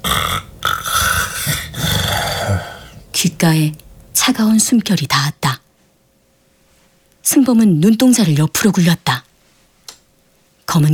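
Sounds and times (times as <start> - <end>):
snoring from a sleeping figure: 0.0 - 3.0
speech: 3.2 - 5.6, 7.4 - 9.2, 10.7 - 10.9.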